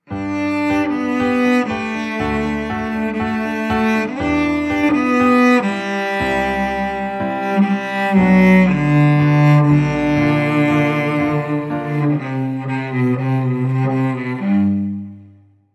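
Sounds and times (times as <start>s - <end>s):
cello: 0.0s - 15.7s.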